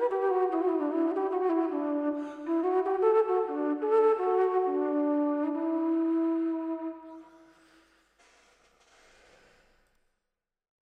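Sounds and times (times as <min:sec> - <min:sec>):
mazurka music: 0:00.0 - 0:07.4.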